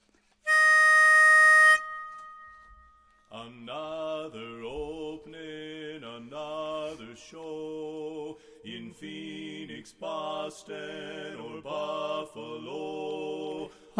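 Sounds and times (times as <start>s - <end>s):
lead melody: 0.5s - 3.0s.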